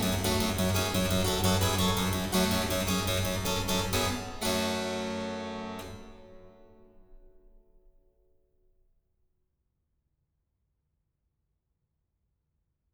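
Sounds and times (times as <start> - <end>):
andante in G minor: 0.0 - 6.7.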